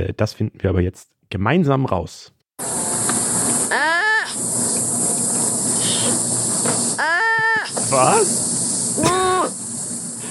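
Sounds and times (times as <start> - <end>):
speech: 0.0 - 2.9, 3.7 - 4.8, 7.0 - 9.6
sloth calls: 3.3 - 4.7, 5.6 - 8.4.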